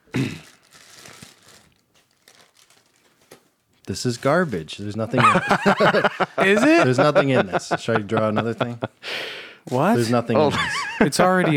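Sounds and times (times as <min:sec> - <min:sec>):
wrapping on a double-wrapped package crinkling and tearing: 0:00.2 - 0:04.8
speech: 0:03.9 - 0:11.5
laughter: 0:05.1 - 0:09.0, 0:09.8 - 0:11.5.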